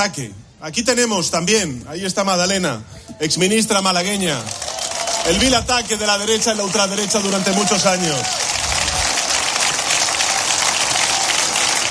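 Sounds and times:
speech: 0.0s - 8.5s
audience applauding: 4.1s - 11.9s.

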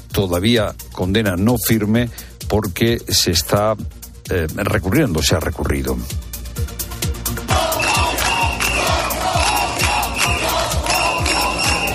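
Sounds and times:
speech: 0.2s - 6.2s
protesters chanting outside a Catalan prison: 7.5s - 11.9s.

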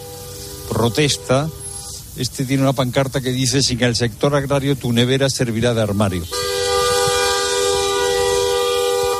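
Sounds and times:
vehicle horn honking at a farmers' protest: 0.0s - 2.1s, 6.1s - 9.1s
engines rumbling: 0.0s - 9.1s
speech: 0.7s - 1.6s, 2.2s - 6.8s.

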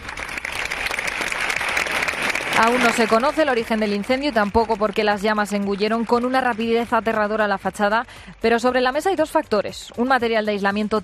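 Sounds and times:
crowd applause: 0.0s - 7.8s
speech: 2.6s - 11.0s.

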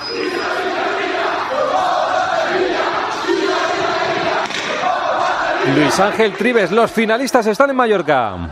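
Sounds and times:
football fans cheering and chanting: 0.0s - 8.5s
speech: 5.7s - 8.5s.

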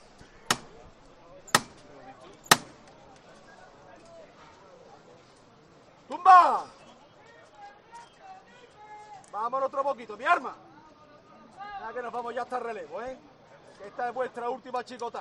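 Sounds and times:
knocker striking a procession float: 0.5s - 0.8s, 1.5s - 1.9s, 2.5s - 2.9s
speech: 9.6s - 10.7s, 11.9s - 15.1s.

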